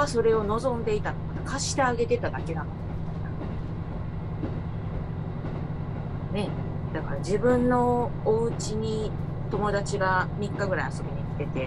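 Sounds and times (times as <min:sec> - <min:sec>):
speech: 0:00.0 - 0:02.8, 0:06.4 - 0:11.6
train running on railway line: 0:00.0 - 0:11.6.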